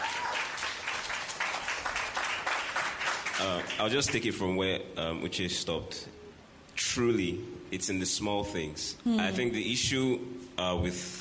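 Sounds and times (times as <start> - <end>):
audience applause: 0.0 - 3.8
speech: 3.4 - 6.2, 6.8 - 11.2.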